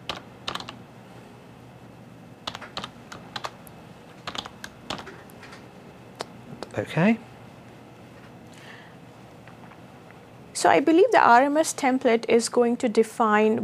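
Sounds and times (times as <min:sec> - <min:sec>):
typing a username on a computer keyboard: 0:00.0 - 0:00.8, 0:02.4 - 0:05.6
speech: 0:06.8 - 0:07.3, 0:10.6 - 0:13.6.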